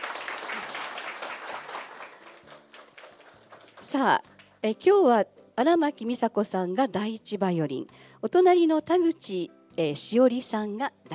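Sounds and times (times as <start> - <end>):
audience applause: 0.0 - 4.0
speech: 3.9 - 11.1.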